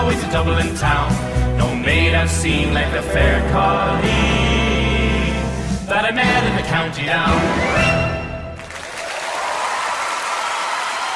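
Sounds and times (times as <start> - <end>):
speech: 0.2 - 4.6, 5.9 - 8.2
audience applause: 8.6 - 11.1.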